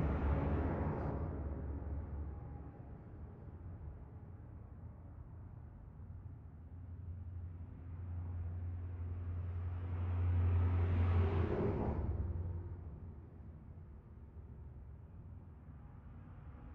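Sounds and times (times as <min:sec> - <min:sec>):
residential traffic heard from an interior: 0:00.0 - 0:04.9, 0:07.0 - 0:16.7.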